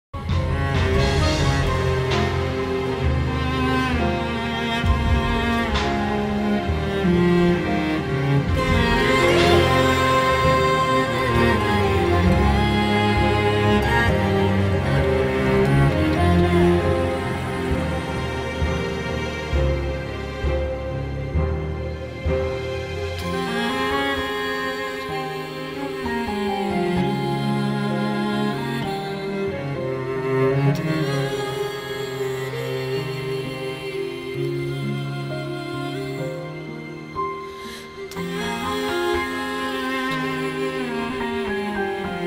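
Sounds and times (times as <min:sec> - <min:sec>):
instrumental background music: 0:00.2 - 0:42.2.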